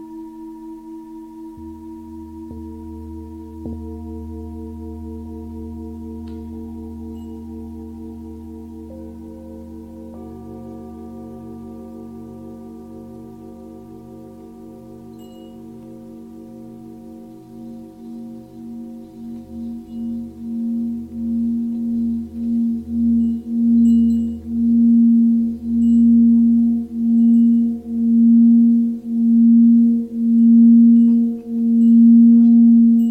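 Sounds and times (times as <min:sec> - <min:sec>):
Tibetan singing bowl humming: 0:00.0 - 0:33.0.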